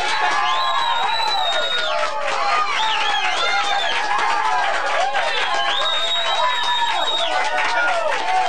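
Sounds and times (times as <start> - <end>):
audience cheering and applause: 0.0 - 8.4.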